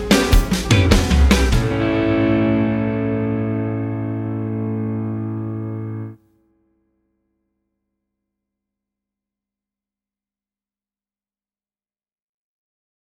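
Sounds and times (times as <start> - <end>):
12 bar Texas shuffle in A at 100 bpm bass practice track: 0.0 - 6.2.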